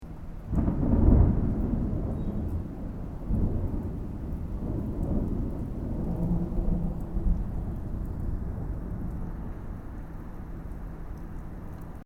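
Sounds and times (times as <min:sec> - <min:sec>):
distant thunder: 0:00.5 - 0:10.1.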